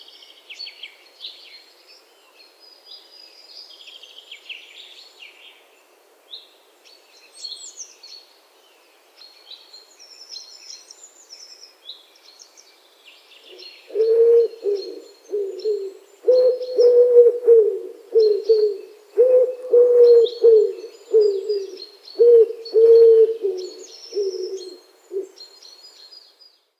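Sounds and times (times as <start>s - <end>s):
wood pigeon calling: 13.9s - 25.3s.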